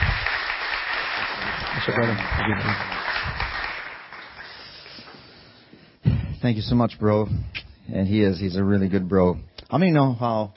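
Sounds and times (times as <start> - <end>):
audience applause: 0.0 - 5.1
speech: 1.8 - 3.0, 6.4 - 10.5.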